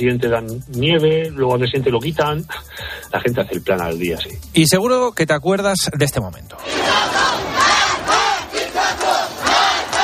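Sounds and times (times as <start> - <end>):
speech: 0.0 - 7.8
street protest crowd chanting a rhythmic slogan: 6.6 - 10.0.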